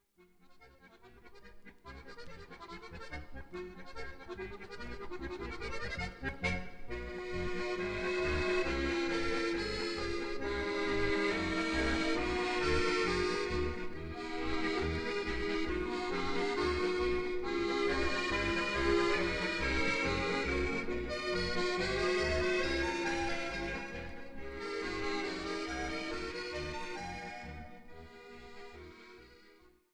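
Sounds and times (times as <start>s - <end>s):
polka music: 0.3s - 29.9s.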